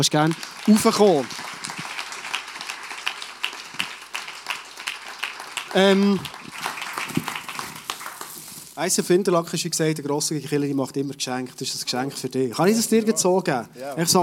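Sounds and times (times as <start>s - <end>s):
speech: 0.0s - 1.4s, 5.7s - 6.4s, 8.8s - 14.2s
audience applause: 0.0s - 8.8s.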